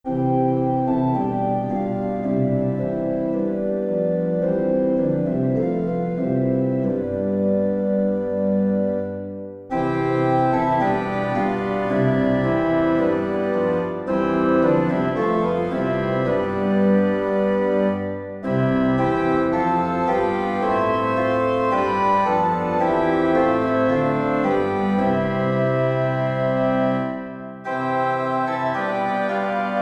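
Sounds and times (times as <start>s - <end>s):
organ: 0.1s - 29.8s.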